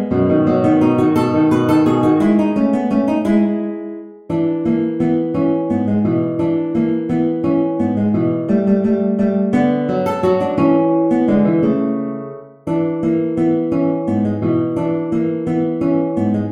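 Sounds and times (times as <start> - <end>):
guitar playing a waltz: 0.0 - 16.5.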